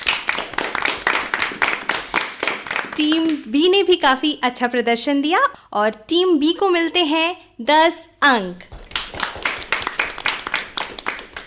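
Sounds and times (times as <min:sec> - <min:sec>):
audience applause: 0:00.0 - 0:03.0, 0:08.8 - 0:11.4
speech: 0:03.0 - 0:08.7.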